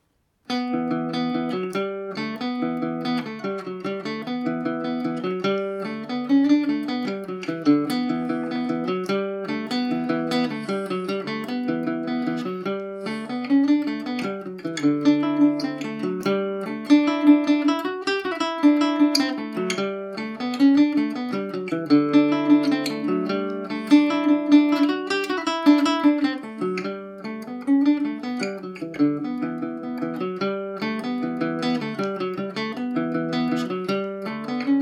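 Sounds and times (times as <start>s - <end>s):
Irish mandolin in E dorian: 0.5s - 34.7s.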